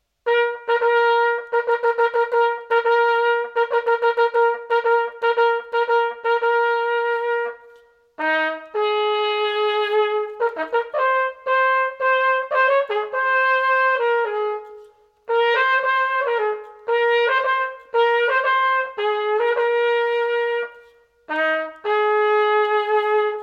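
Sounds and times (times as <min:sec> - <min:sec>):
trumpet: 0:00.0 - 0:23.4.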